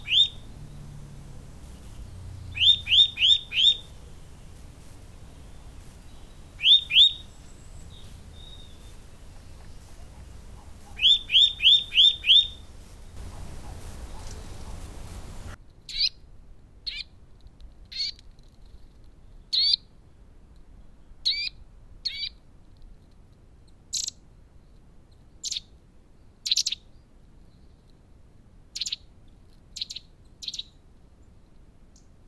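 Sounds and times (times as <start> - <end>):
Eurasian nuthatch Sitta europaea calling: 0.0 - 15.6.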